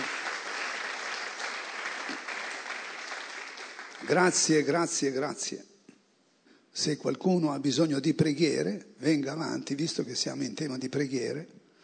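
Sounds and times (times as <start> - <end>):
audience applause: 0.0 - 4.5
speech: 4.1 - 5.7, 6.8 - 11.6.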